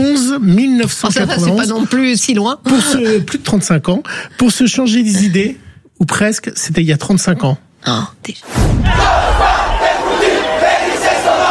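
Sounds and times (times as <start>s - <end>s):
speech: 0.1s - 9.4s
student protest crowd shouting: 8.8s - 11.4s.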